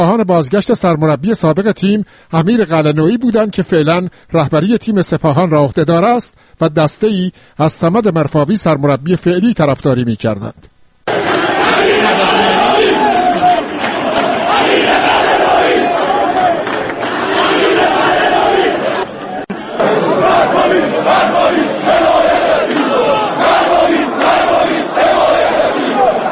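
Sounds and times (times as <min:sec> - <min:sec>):
speech: 0:00.0 - 0:11.2
football fans chanting slogans in a stadium at an Iranian Premier League match: 0:11.1 - 0:26.3.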